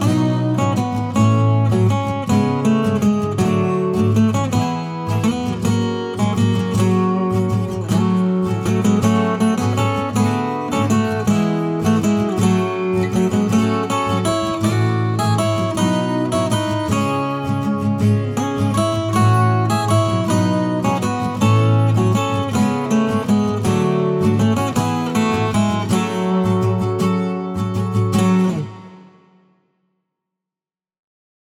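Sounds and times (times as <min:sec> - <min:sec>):
acoustic music: 0:00.0 - 0:29.5.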